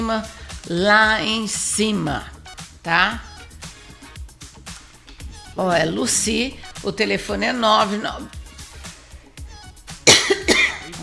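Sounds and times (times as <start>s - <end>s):
speech: 0.1s - 3.3s, 5.6s - 8.4s
person sneezing: 10.1s - 11.0s.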